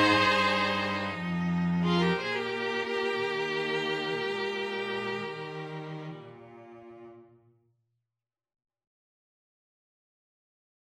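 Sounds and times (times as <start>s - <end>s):
string quintet playing: 0.0s - 7.4s.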